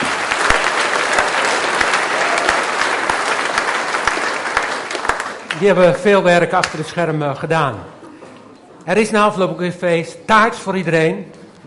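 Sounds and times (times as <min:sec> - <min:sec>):
audience applause: 0:00.0 - 0:05.9
speech: 0:05.6 - 0:08.0, 0:08.8 - 0:11.6.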